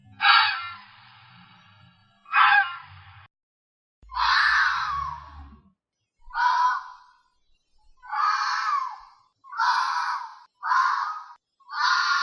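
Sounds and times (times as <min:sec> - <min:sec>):
fox calling: 0:00.1 - 0:01.0, 0:02.2 - 0:03.0, 0:04.1 - 0:05.5, 0:06.3 - 0:07.1, 0:08.0 - 0:12.2.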